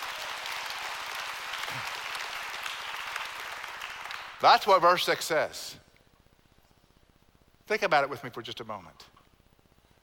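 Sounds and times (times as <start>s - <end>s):
audience clapping: 0.0s - 5.1s
speech: 4.4s - 5.8s, 7.7s - 9.2s.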